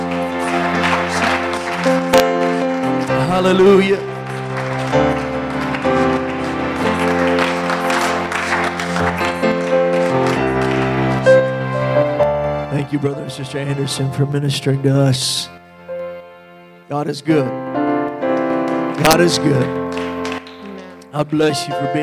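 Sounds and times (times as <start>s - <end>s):
audience clapping hands: 0.0s - 12.9s, 18.2s - 21.1s
speech: 3.4s - 4.2s, 4.9s - 5.2s, 12.9s - 15.6s, 16.9s - 17.7s, 19.0s - 19.9s, 21.2s - 22.0s.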